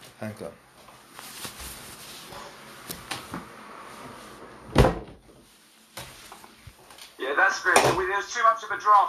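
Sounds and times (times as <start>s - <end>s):
speech: 0.2s - 0.7s, 7.4s - 9.0s
window shutting thud: 4.7s - 5.2s.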